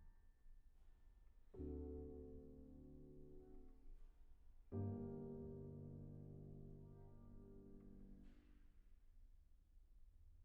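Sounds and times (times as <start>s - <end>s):
piano lullaby: 1.6s - 8.5s.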